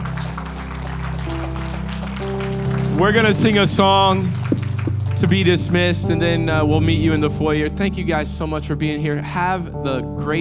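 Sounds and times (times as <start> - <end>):
audience applause: 0.0 - 6.0
speech: 3.0 - 4.5, 5.2 - 10.4.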